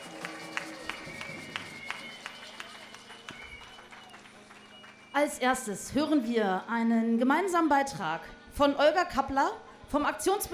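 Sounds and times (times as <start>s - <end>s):
rhythmic audience clapping: 0.0s - 5.2s
speech: 5.2s - 10.5s.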